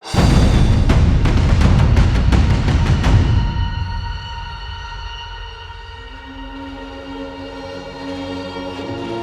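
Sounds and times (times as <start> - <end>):
boss battle cue ending: 0.1 - 4.6.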